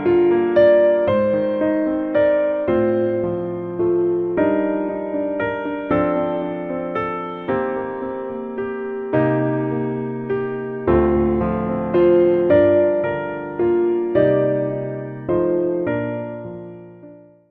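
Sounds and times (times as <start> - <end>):
hymn played on low piano: 0.0 - 17.4.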